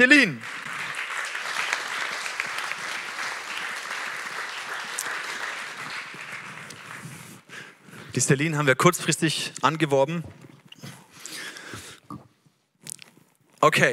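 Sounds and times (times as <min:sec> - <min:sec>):
speech: 0:00.0 - 0:00.6, 0:08.2 - 0:10.5, 0:13.6 - 0:13.9
audience applause: 0:00.0 - 0:07.6.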